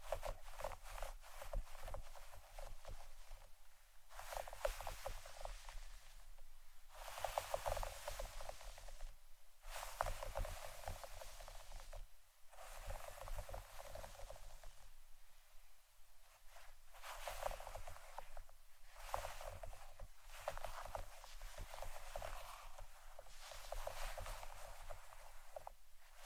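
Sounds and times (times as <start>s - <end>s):
scratching and brushing strokes: 0.0s - 3.5s, 4.1s - 14.9s, 16.2s - 26.2s.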